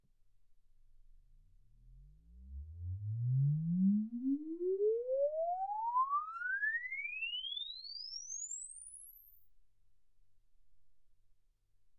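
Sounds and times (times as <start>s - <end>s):
exponential sine sweep from 10 Hz to 24 kHz: 3.8s - 9.6s.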